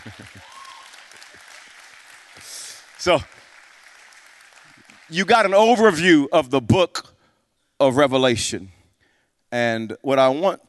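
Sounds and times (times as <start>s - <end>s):
speech: 0.0s - 0.6s, 2.4s - 3.4s, 5.1s - 7.1s, 7.8s - 8.8s, 9.5s - 10.6s
audience applause: 0.0s - 5.6s.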